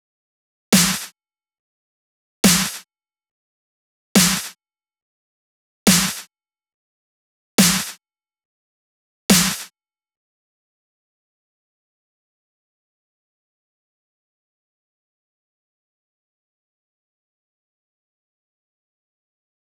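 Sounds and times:
dry 140 BPM break snare drum: 0.8 - 1.1, 2.4 - 2.8, 4.2 - 4.6, 5.9 - 6.3, 7.6 - 8.0, 9.3 - 9.7.

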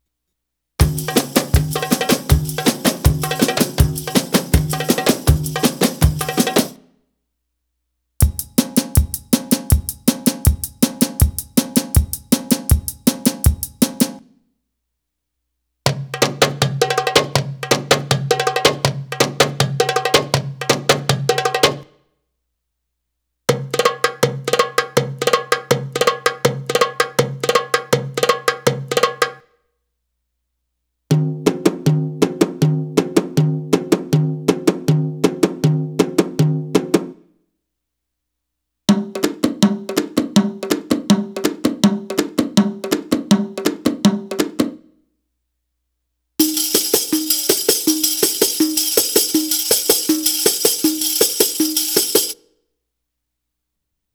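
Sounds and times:
Arabic rhythm percussion: 0.8 - 6.8, 8.2 - 14.2, 16.0 - 21.8, 23.6 - 29.4, 31.2 - 37.2, 39.0 - 44.8, 46.4 - 52.4.

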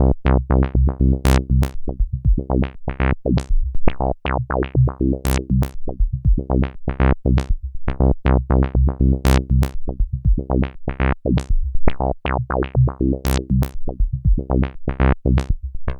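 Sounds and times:
proto-techno bassline: 0.0 - 15.9.

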